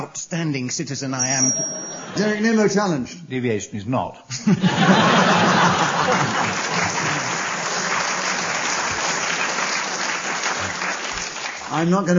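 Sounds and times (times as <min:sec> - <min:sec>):
speech: 0:00.0 - 0:05.4, 0:11.7 - 0:12.1
laughter: 0:01.7 - 0:02.8, 0:04.3 - 0:09.3
studio audience applause: 0:05.0 - 0:12.1.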